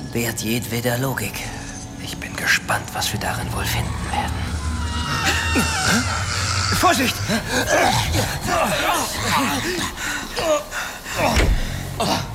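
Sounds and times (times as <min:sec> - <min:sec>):
speech: 0:00.1 - 0:04.5, 0:05.1 - 0:12.3
door suddenly yanked open: 0:11.2 - 0:12.1.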